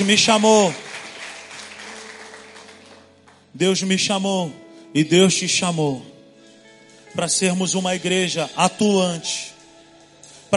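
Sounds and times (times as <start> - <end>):
speech: 0.0 - 0.9, 3.6 - 6.2, 7.1 - 9.5
audience applause: 0.0 - 3.4.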